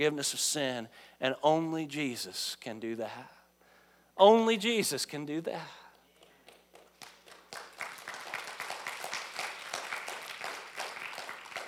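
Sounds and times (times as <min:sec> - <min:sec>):
speech: 0:00.0 - 0:03.4, 0:04.2 - 0:05.8
audience applauding: 0:06.7 - 0:11.6.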